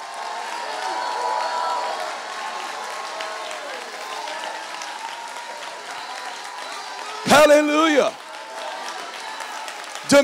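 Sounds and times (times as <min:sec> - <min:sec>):
audience clapping: 0:00.0 - 0:10.2
speech: 0:07.4 - 0:08.2.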